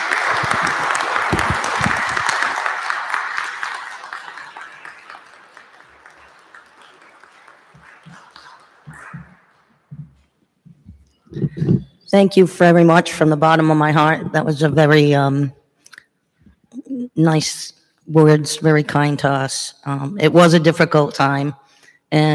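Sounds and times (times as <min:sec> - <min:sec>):
audience applause: 0:00.0 - 0:10.0
speech: 0:12.1 - 0:15.6, 0:17.2 - 0:22.3.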